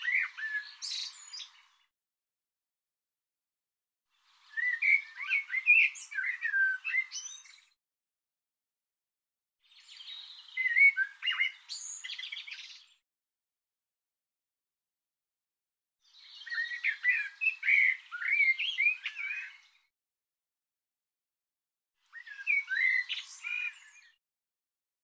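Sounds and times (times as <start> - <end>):
bird warbling song: 0.0 - 1.9, 4.2 - 7.8, 9.6 - 13.0, 16.0 - 19.9, 22.0 - 24.2.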